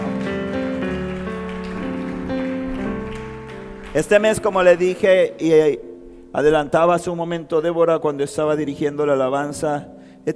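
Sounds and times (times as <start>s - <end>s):
audience applauding: 0.0s - 5.3s
speech: 3.9s - 10.3s.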